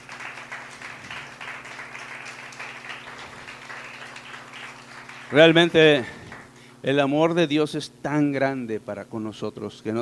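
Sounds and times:
audience applause: 0.0 - 6.5
speech: 5.3 - 6.2, 6.8 - 10.0.

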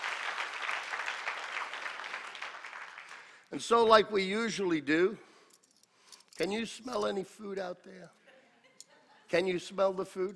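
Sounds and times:
applause: 0.0 - 3.5
speech: 3.5 - 5.3, 6.4 - 8.2, 9.3 - 10.3.

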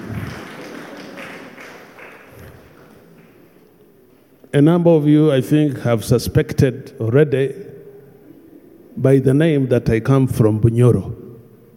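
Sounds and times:
audience clapping hands: 0.0 - 4.2
speech: 4.5 - 7.7, 9.0 - 11.2.

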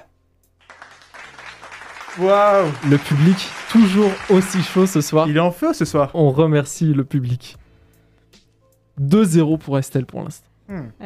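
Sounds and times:
audience applause: 0.6 - 5.4
speech: 2.2 - 7.6, 9.0 - 11.0.

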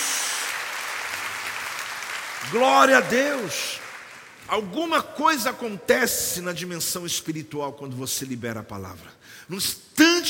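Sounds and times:
audience applause: 0.0 - 4.5
speech: 2.4 - 3.8, 4.5 - 10.2.

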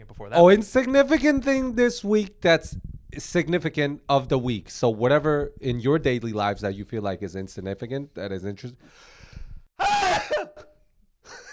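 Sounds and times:
speech: 0.2 - 9.1
loud explosive sneeze: 9.8 - 10.7.

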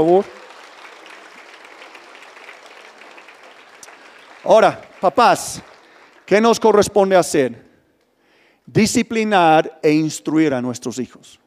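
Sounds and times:
speech: 0.0 - 0.4, 4.4 - 5.7, 6.3 - 7.6, 8.7 - 11.4
audience applause: 0.0 - 6.9.

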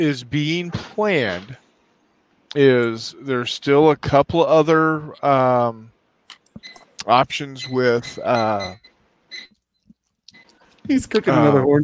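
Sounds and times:
speech: 0.0 - 1.6, 2.5 - 5.9, 6.6 - 9.5, 10.9 - 11.8
timer going off: 6.6 - 9.6.

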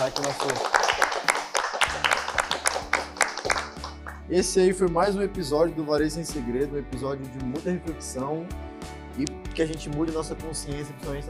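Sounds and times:
speech: 0.0 - 0.8, 4.3 - 11.2
group clapping: 0.0 - 4.3.

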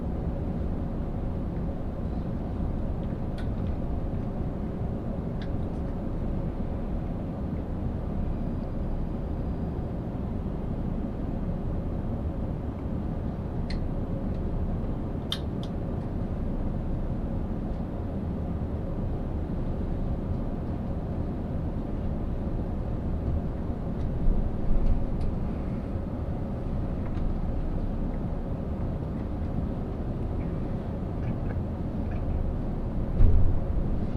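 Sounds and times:
Ishizuchi limited express train interior rumble on the Yosan Line: 0.0 - 34.1.

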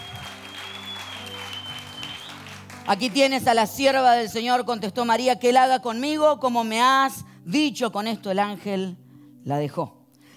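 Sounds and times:
audience applause: 0.0 - 3.5
speech: 2.9 - 10.0.

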